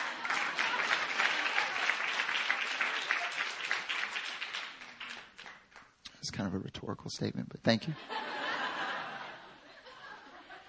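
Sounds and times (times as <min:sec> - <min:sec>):
laughter: 0:00.0 - 0:01.8, 0:08.0 - 0:10.6
audience clapping: 0:00.0 - 0:06.2
speech: 0:06.2 - 0:08.3.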